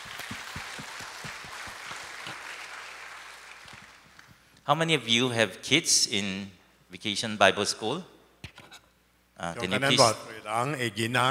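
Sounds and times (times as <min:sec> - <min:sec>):
audience applause: 0:00.0 - 0:04.3
speech: 0:04.7 - 0:08.1, 0:09.4 - 0:11.2.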